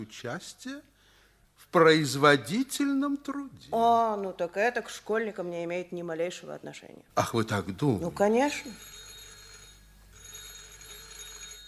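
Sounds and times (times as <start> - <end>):
speech: 0.0 - 0.9, 1.6 - 8.9
telephone bell ringing: 8.1 - 11.6.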